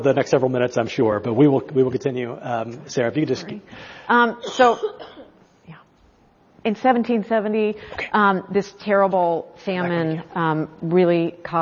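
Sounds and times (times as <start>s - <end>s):
speech: 0.0s - 5.2s, 6.6s - 11.6s
harsh coughing: 4.4s - 5.4s.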